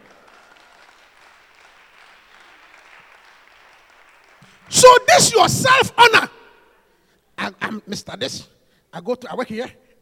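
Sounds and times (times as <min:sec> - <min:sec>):
audience clapping: 0:00.0 - 0:05.1
speech: 0:04.6 - 0:06.4, 0:07.7 - 0:10.0.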